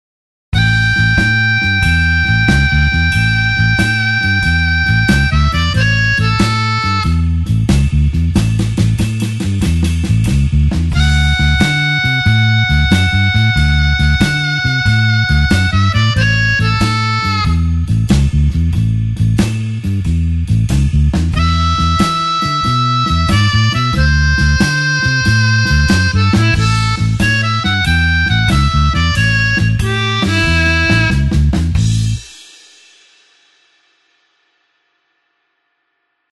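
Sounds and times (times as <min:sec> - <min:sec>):
blues harp shuffle in A: 0:00.6 - 0:32.4.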